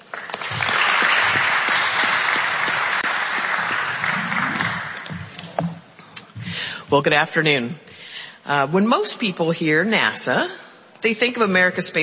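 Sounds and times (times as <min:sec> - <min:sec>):
audience applause welcoming a speaker at a NASA aeronautics event: 0:00.0 - 0:05.4
speech: 0:06.9 - 0:12.0.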